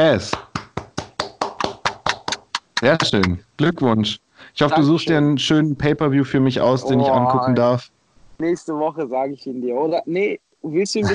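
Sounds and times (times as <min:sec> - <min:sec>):
speech: 0:00.0 - 0:00.4, 0:02.8 - 0:11.1
hands clapping: 0:00.1 - 0:03.4
laughter: 0:01.9 - 0:07.7.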